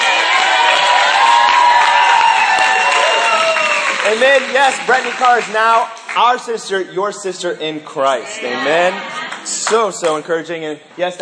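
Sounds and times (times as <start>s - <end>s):
audience cheering: 0.0s - 5.6s
audience clapping: 0.0s - 6.6s, 9.2s - 10.3s
speech: 4.1s - 11.2s.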